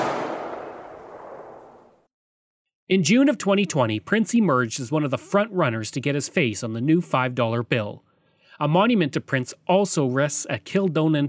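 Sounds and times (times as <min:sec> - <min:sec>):
ceremonial rifle volley by Princess Patricia's Canadian Light Infantry honour guard: 0:00.0 - 0:02.0
speech: 0:02.9 - 0:11.2.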